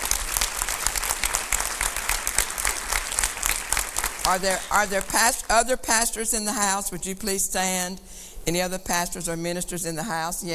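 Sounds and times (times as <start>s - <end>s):
audience applause welcoming a guest at an evening gathering: 0.0s - 5.4s
speech: 4.3s - 10.5s.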